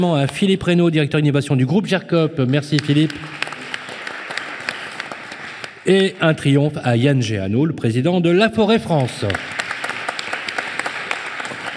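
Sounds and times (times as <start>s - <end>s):
speech: 0.0s - 3.4s, 5.8s - 9.5s
audience applause: 2.5s - 6.1s, 9.0s - 11.7s.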